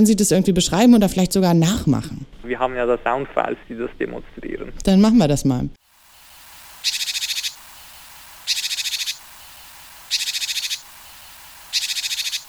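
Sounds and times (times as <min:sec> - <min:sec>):
speech: 0:00.0 - 0:05.8
Japanese tit calls: 0:05.8 - 0:12.4.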